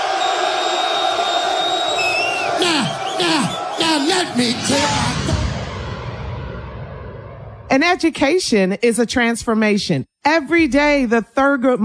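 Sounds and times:
sliding whistle-like cry: 0.0s - 3.8s
crowd cheering: 0.0s - 6.2s
speech: 3.2s - 5.1s, 7.7s - 11.8s.

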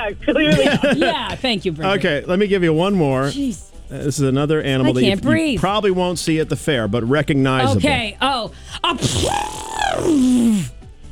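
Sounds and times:
speech: 0.0s - 10.8s
laughter: 0.3s - 1.9s, 7.6s - 8.0s
person imitating an elephant's trumpet: 4.8s - 5.4s, 7.6s - 8.1s, 8.8s - 10.8s.

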